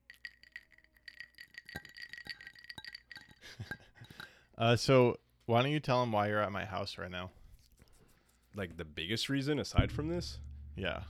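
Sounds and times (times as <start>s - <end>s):
ice cubes clinking in a glass: 0.0s - 4.3s
speech: 4.6s - 7.4s, 8.6s - 11.0s.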